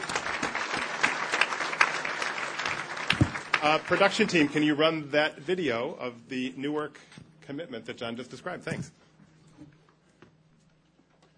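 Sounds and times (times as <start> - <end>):
audience applause: 0.0 - 4.8
speech: 3.6 - 9.0.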